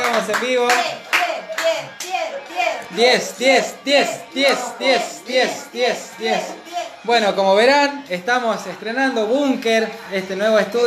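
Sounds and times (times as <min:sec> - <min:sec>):
applause, hands clapping: 0:00.0 - 0:02.9
speech: 0:00.3 - 0:01.0, 0:01.6 - 0:10.8.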